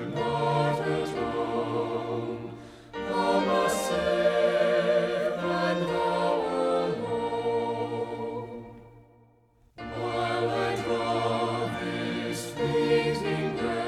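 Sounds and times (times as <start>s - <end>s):
music: 0.0s - 13.8s.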